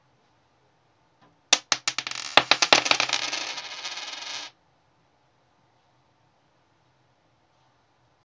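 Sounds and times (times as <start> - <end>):
coins clinking: 1.6 - 4.5.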